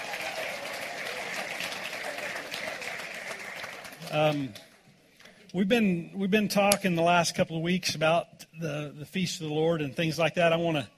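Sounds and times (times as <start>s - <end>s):
audience applause: 0.0s - 4.6s
speech: 4.1s - 4.7s, 5.5s - 10.9s.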